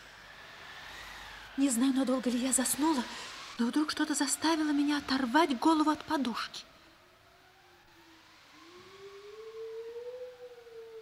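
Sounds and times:
speech: 1.6s - 6.7s
wolf howling: 7.7s - 11.0s.

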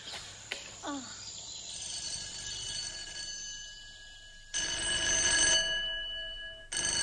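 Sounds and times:
telephone bell ringing: 1.7s - 7.0s.

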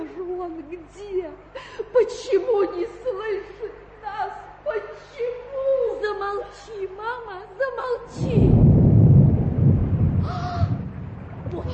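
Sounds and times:
speech: 0.8s - 3.5s
thunder rumbling: 8.1s - 11.7s.

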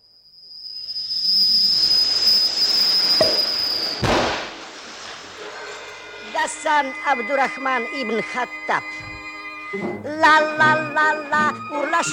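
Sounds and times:
tight cork squealing as it is pulled from bottle: 1.0s - 3.9s
speech: 6.4s - 9.0s, 9.7s - 12.1s.

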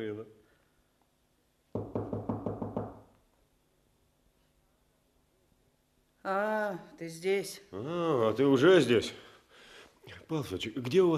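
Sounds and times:
knocking on a terrace door: 1.7s - 3.1s
speech: 6.3s - 9.2s, 10.3s - 11.1s.

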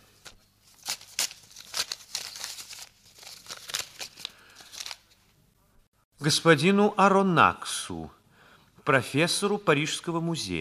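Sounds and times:
paper package being torn open: 0.2s - 5.2s
speech: 6.2s - 8.2s, 8.8s - 10.5s.

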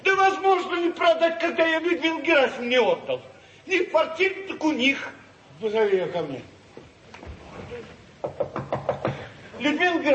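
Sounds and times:
speech: 0.9s - 6.5s, 9.6s - 10.1s
firm knocking on a door: 8.2s - 9.3s.

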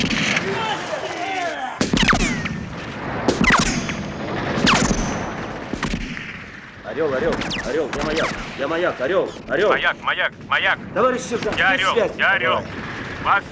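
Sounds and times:
gunfire bursts in battle: 0.0s - 0.9s, 1.8s - 8.7s
people shouting: 0.3s - 1.8s
heavy grenade blasts: 1.8s - 13.5s
speech: 7.0s - 13.5s.

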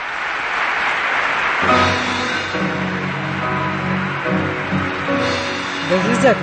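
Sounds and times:
concert audience ovation: 0.0s - 6.4s.

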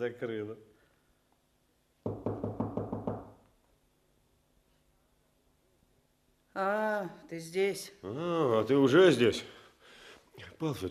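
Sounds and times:
speech: 0.0s - 0.8s, 6.6s - 9.6s, 10.4s - 10.8s
knocking on a wooden terrace door: 2.0s - 3.4s.

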